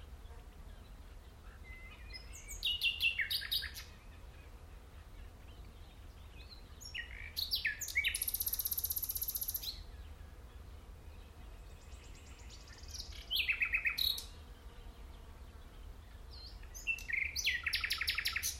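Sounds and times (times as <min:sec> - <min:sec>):
common nightingale Luscinia megarhynchos song: 0:00.2 - 0:14.7, 0:15.4 - 0:18.5.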